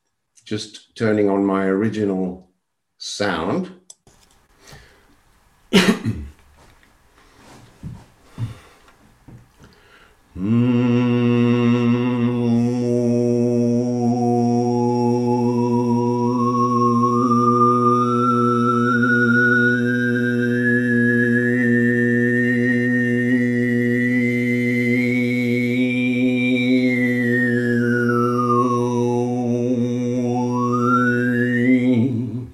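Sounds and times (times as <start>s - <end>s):
speech: 0.5s - 3.8s
coughing: 5.7s - 6.4s
throat clearing: 5.7s - 6.4s
overtone singing with flute-like harmonics: 10.3s - 32.5s.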